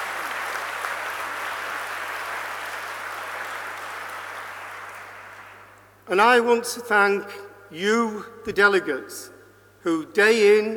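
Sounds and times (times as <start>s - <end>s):
audience applause: 0.0s - 5.7s
speech: 6.1s - 10.7s.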